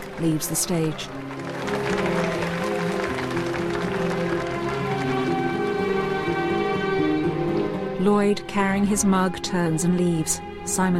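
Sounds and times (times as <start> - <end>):
audience standing and clapping: 0.0 - 7.0
sustained tonal music: 0.0 - 10.9
speech: 0.2 - 2.3, 8.0 - 10.9.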